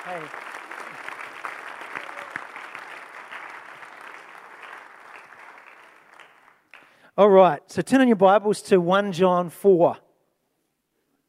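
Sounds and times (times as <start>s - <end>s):
audience clapping: 0.0s - 7.1s
speech: 0.1s - 0.6s, 7.2s - 10.0s.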